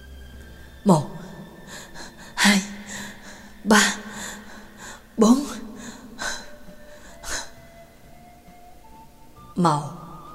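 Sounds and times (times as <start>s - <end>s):
speech: 0.8s - 1.1s, 3.7s - 4.1s, 5.2s - 5.5s, 9.6s - 10.0s
person gasping loudly for breath in a room: 1.1s - 7.6s.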